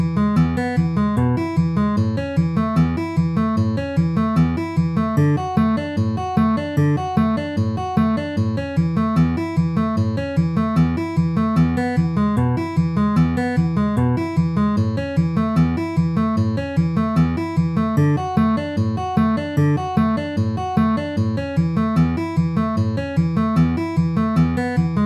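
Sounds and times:
D A E A picking pattern with alternating bass at 150 bpm: 0.0 - 25.0.

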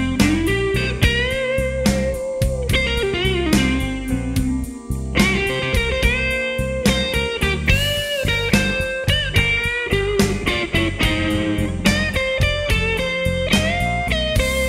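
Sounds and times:
hard-edged fast-tempo blues music: 0.0 - 14.6.

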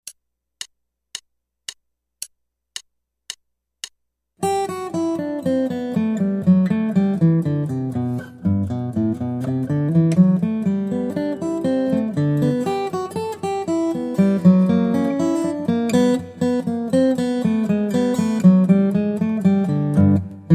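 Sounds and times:
guitar: 4.4 - 20.5.

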